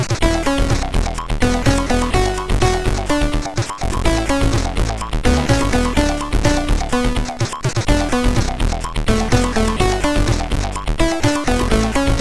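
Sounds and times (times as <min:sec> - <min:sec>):
MOS6581R3 SID chip music: 0:00.2 - 0:12.1.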